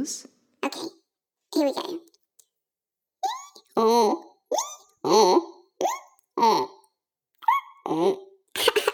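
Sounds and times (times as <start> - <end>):
speech: 0.0 - 2.1, 3.8 - 5.5, 6.4 - 6.7
voice imitating a donkey bray: 0.6 - 1.0, 1.6 - 2.2, 3.2 - 8.3.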